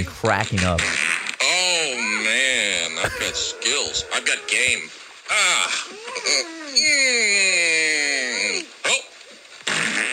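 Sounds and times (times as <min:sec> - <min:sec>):
speech: 0:00.0 - 0:01.0, 0:03.0 - 0:05.6, 0:06.2 - 0:07.8
fart sound effects from a fart machine: 0:00.0 - 0:01.5, 0:09.6 - 0:10.1
laughter: 0:01.9 - 0:06.4.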